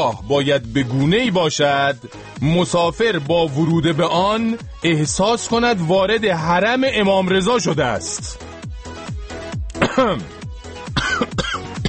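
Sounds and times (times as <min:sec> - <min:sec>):
speech: 0:00.0 - 0:08.5, 0:10.0 - 0:10.4
throat clearing: 0:09.7 - 0:10.4, 0:11.0 - 0:11.8
person coughing after choking: 0:09.8 - 0:11.8.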